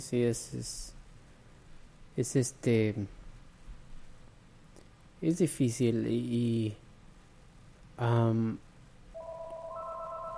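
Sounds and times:
speech: 0.0 - 1.0, 2.2 - 3.2, 5.2 - 6.8, 8.0 - 8.7
steady electronic telephone line tones: 9.2 - 10.3
telephone ringing with an incoming call to a radio show: 9.2 - 10.3.

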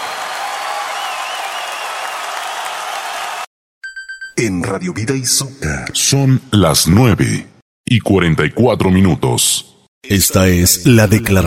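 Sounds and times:
audience applause: 0.0 - 3.5
speech: 4.4 - 11.4.

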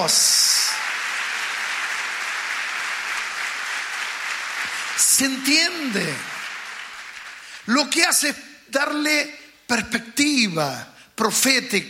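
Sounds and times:
speech: 0.0 - 0.5, 5.2 - 6.4, 7.7 - 11.8
audience applause: 0.0 - 7.7.

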